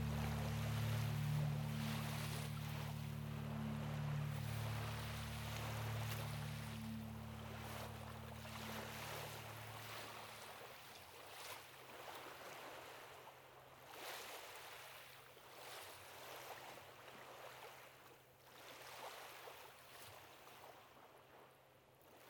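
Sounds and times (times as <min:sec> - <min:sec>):
mellow bass solo: 0:00.0 - 0:10.4
Lake Michigan waves: 0:00.0 - 0:22.2.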